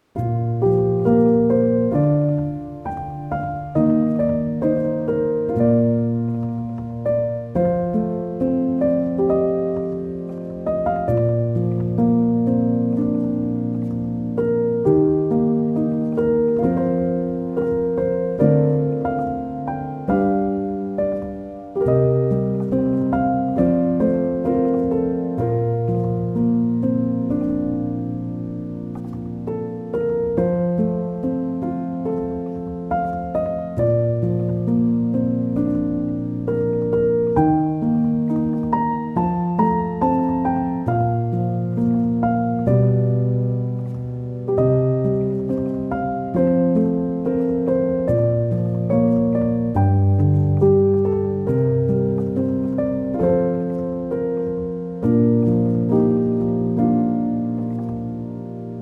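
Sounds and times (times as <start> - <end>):
piano music: 0.0 - 58.8.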